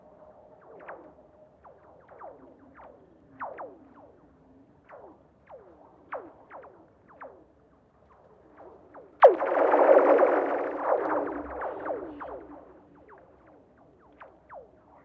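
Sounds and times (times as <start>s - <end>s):
lake soundscape: 9.2s - 13.1s.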